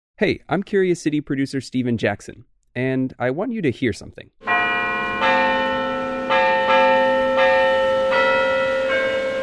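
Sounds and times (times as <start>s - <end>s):
speech: 0.2s - 4.4s
church bells ringing: 4.4s - 9.4s.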